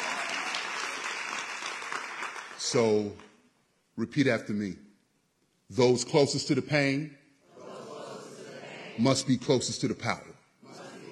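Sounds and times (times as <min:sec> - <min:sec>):
audience clapping at a community organizing speech: 0:00.0 - 0:03.4
speech: 0:02.7 - 0:03.3, 0:04.0 - 0:04.9, 0:05.7 - 0:07.2, 0:09.0 - 0:10.4.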